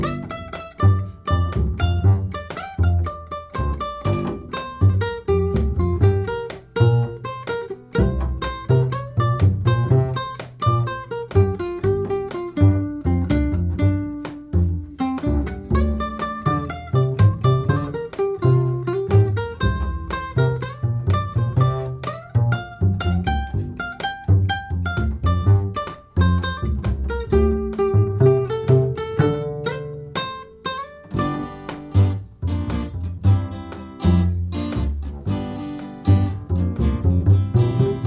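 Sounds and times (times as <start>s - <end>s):
cheerful blues trio playing: 0.0s - 38.0s.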